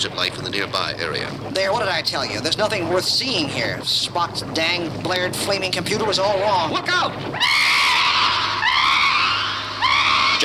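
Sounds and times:
speech: 0:00.0 - 0:08.0
winged monster screaming: 0:07.4 - 0:10.4.

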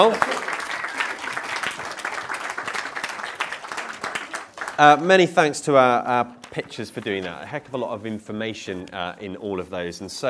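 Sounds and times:
speech: 0:00.0 - 0:00.3, 0:04.8 - 0:10.2
audience applause: 0:00.0 - 0:05.2.

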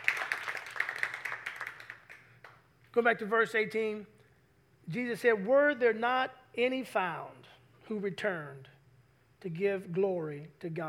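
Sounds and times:
audience hand clapping: 0:00.0 - 0:02.7
speech: 0:03.0 - 0:04.2, 0:04.9 - 0:08.7, 0:09.4 - 0:10.8.

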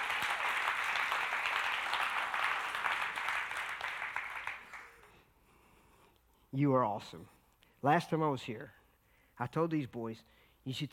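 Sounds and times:
audience applause: 0:00.0 - 0:05.1
speech: 0:06.5 - 0:08.8, 0:09.4 - 0:10.9.

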